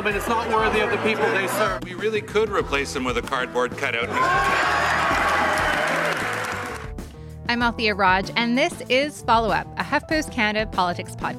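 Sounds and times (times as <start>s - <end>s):
laughter: 0.0s - 1.8s
speech: 0.0s - 5.2s, 7.5s - 11.3s
shouting in parliament chamber: 4.1s - 6.6s.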